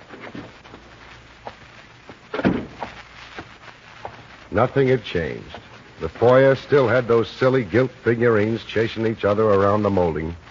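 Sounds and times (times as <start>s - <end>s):
main door opening and thumping shut: 2.4s - 2.8s
speech: 4.6s - 10.4s.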